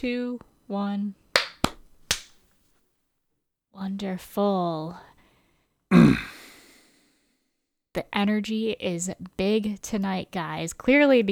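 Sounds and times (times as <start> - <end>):
speech: 0.0 - 1.2, 3.8 - 5.1, 8.0 - 11.2
hand claps for audio sync: 1.4 - 2.4.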